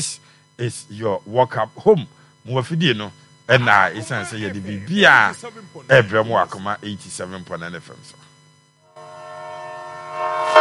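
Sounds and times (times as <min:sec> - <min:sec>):
speech: 0:00.0 - 0:08.3
train horn sound effect: 0:08.9 - 0:10.5.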